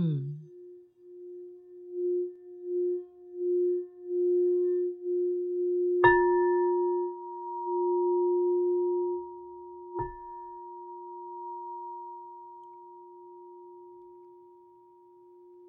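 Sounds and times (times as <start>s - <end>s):
crystal singing bowl rubbed around its rim: 0.0s - 15.6s.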